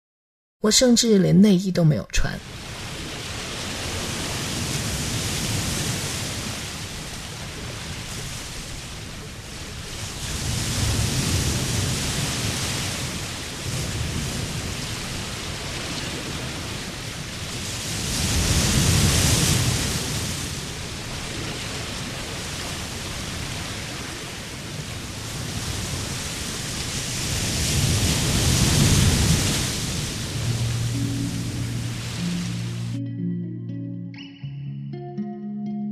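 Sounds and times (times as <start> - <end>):
speech: 0.6 - 2.6
ocean waves at night: 2.3 - 33.9.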